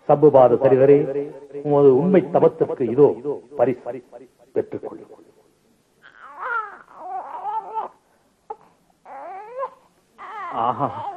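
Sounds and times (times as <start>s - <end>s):
speech: 0.1s - 5.2s, 10.5s - 11.1s
newborn infant crying in a Tamil radio drama: 6.0s - 11.1s.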